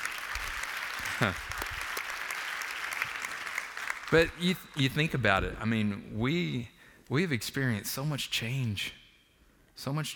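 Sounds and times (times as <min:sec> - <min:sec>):
audience clapping: 0:00.0 - 0:05.4
speech: 0:01.2 - 0:01.5, 0:04.1 - 0:09.0, 0:09.8 - 0:10.1.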